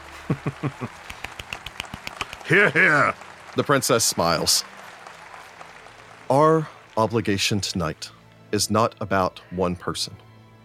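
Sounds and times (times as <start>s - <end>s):
laughter: 0.0s - 4.6s
raucous applause: 0.0s - 8.1s
speech: 0.3s - 1.1s, 2.5s - 4.7s, 6.3s - 10.2s.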